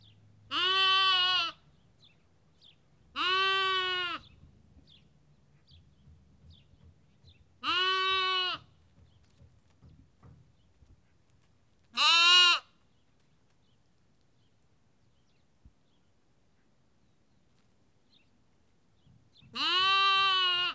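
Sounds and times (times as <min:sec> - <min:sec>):
sheep lamb bleating in Kakopetria Cyprus: 0:00.5 - 0:01.6, 0:03.1 - 0:04.3, 0:07.6 - 0:08.7, 0:12.0 - 0:12.7, 0:19.6 - 0:20.7.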